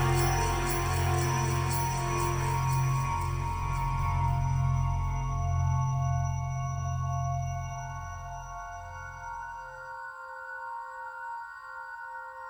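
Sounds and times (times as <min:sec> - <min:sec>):
dark ambient film music: 0:00.0 - 0:10.0.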